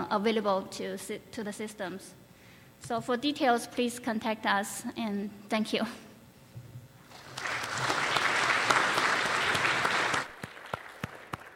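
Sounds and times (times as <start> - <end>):
speech: 0.1 - 2.2, 2.8 - 6.1
audience applause: 7.1 - 11.5.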